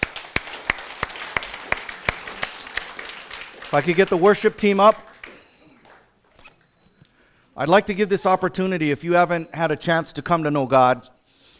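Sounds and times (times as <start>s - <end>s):
audience clapping: 0.0s - 6.3s
speech: 3.7s - 5.1s, 7.6s - 11.2s.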